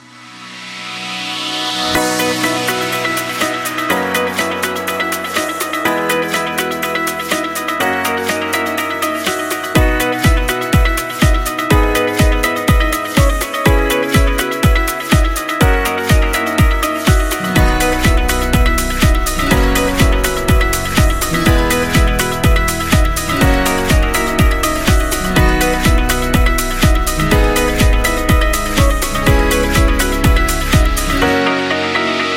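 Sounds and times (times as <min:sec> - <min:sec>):
uplifting promo music: 0:00.0 - 0:32.3.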